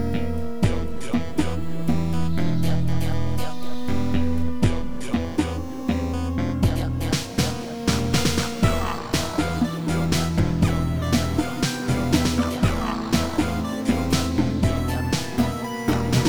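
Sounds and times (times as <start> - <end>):
telephone hip hop beat: 0.1 - 16.2.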